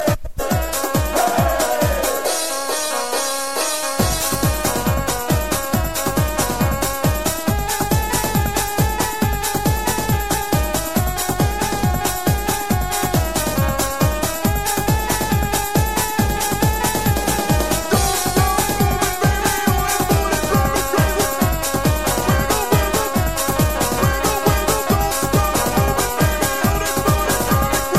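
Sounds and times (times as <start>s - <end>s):
music beat: 0.0s - 27.9s.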